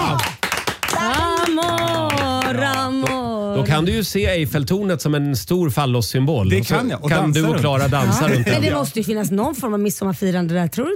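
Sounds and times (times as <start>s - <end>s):
quick hand claps: 0.0s - 3.4s
speech: 3.6s - 10.9s.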